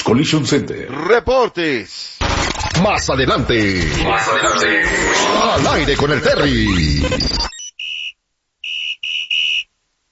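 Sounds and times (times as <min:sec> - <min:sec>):
speech: 0:00.1 - 0:02.0, 0:02.8 - 0:07.5
whistle blown: 0:07.6 - 0:09.7.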